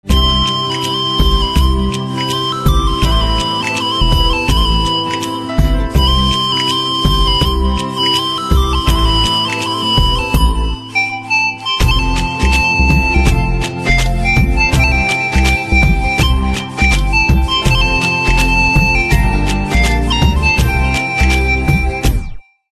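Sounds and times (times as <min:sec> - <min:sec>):
piccolo ringtone: 0:00.1 - 0:22.7.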